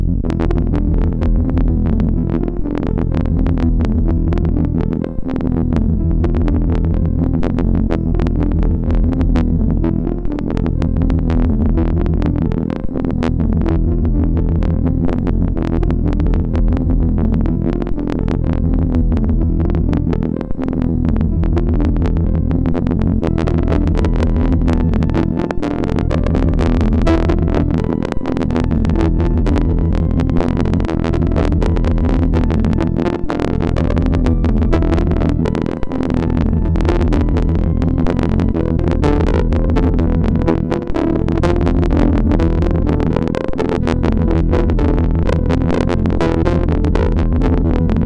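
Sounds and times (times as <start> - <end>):
chiptune jingle on a MOS6581R4 sound chip: 0.2 - 48.0.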